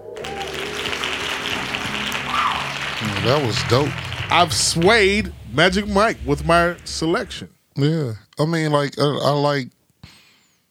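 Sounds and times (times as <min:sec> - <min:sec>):
hand claps in a music track: 0:00.0 - 0:04.9
low sustained tones: 0:00.0 - 0:07.5
speech: 0:03.1 - 0:09.8.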